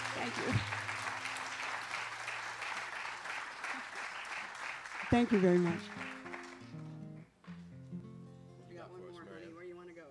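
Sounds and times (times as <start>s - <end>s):
audience clapping: 0.0s - 7.7s
speech: 0.2s - 0.8s, 5.1s - 6.0s.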